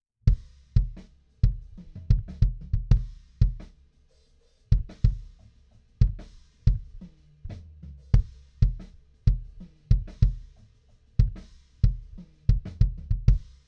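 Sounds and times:
kick drum: 0.3s - 3.6s, 8.2s - 10.4s, 11.2s - 13.6s.

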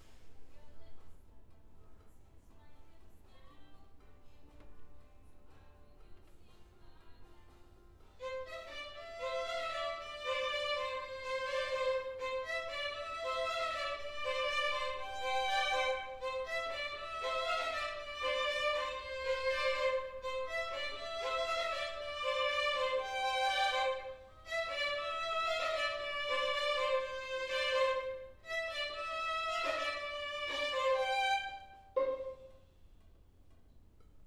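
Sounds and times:
cello: 8.2s - 32.6s.

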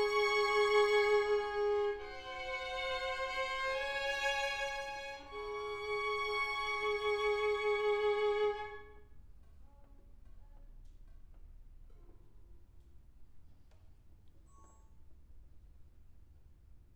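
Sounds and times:
cello: 0.0s - 10.6s.

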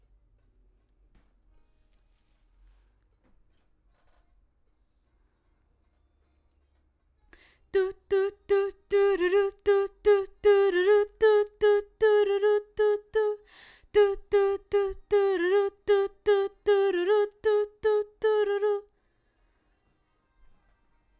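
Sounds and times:
background vocals: 7.4s - 18.9s.

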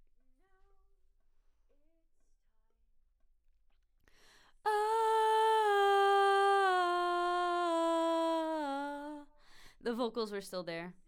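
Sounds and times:
background vocals: 4.5s - 9.4s.

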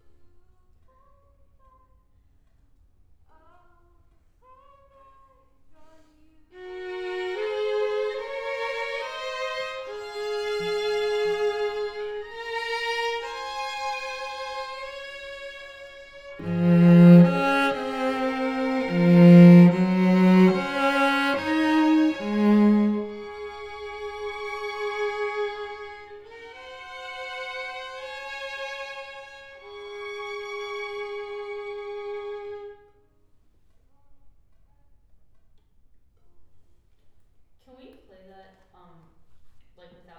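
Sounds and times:
cello: 6.5s - 33.0s.

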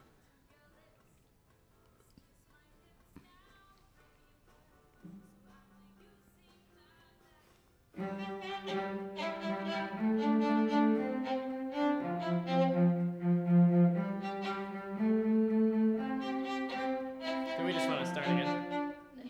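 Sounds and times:
violin: 8.0s - 19.2s.

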